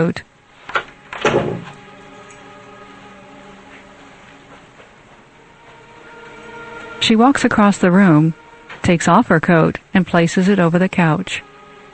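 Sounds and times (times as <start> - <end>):
speech: 0.0 - 0.3, 7.1 - 11.5
door opening with creak and thump: 0.7 - 1.8.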